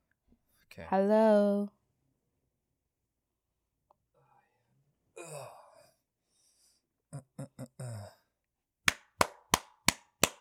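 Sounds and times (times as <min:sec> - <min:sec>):
speech: 0:00.8 - 0:01.8
throaty vocal noises: 0:07.2 - 0:08.3
hand claps for sound sync: 0:08.9 - 0:10.3.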